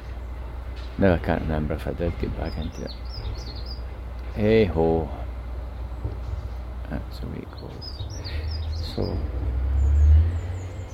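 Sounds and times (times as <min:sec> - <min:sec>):
bin lorry engine rumble on its collection rounds: 0:00.0 - 0:10.9
speech: 0:00.8 - 0:03.7, 0:04.4 - 0:05.2, 0:06.9 - 0:09.6.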